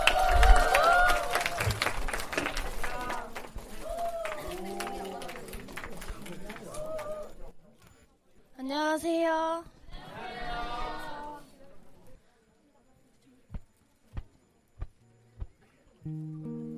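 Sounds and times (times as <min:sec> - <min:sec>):
audience applause: 0:00.0 - 0:07.5
voices: 0:00.0 - 0:16.4.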